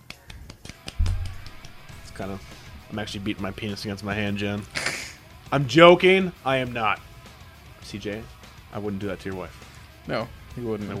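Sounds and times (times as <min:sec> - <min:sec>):
soft light golf clap: 0:00.0 - 0:03.0
low rumble: 0:01.0 - 0:03.8
speech: 0:02.2 - 0:04.8, 0:05.5 - 0:07.1, 0:07.9 - 0:10.9.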